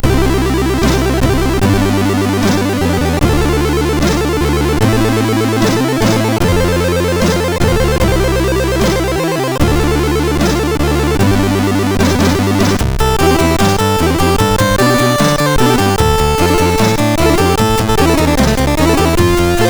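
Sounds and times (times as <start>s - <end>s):
MOS6581R4 SID chip music: 0.0s - 19.6s.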